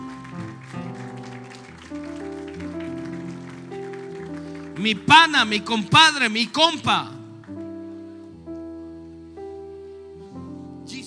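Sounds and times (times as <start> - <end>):
crowd applause: 0.0 - 5.8
speech: 4.8 - 7.1.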